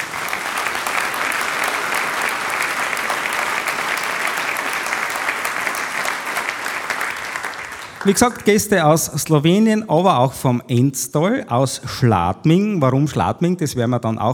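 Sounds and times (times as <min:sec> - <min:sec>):
audience applause: 0:00.0 - 0:08.9
speech: 0:08.0 - 0:14.3.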